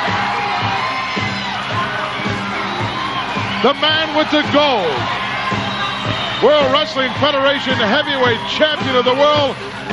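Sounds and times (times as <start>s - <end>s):
huge arena crowd cheering: 0.0s - 9.9s
speech: 3.6s - 5.2s, 6.4s - 9.8s.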